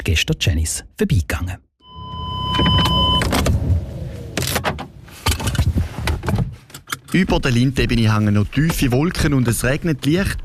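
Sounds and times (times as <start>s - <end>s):
speech: 0.0s - 1.6s, 7.1s - 10.4s
car arriving at Flugplatz Schennis airfield: 1.8s - 6.2s.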